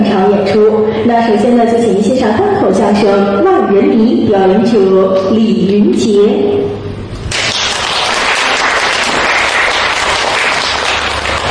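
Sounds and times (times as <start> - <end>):
speech: 1.1 - 6.8
audience applause: 7.3 - 11.4.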